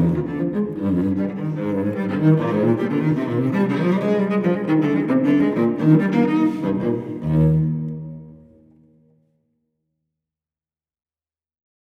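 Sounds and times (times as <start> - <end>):
solo cello piece in E flat major: 0.0 - 9.2.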